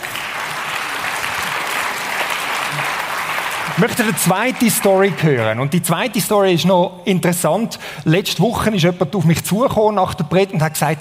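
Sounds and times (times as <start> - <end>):
audience applause: 0.0 - 5.6
speech: 3.8 - 10.9.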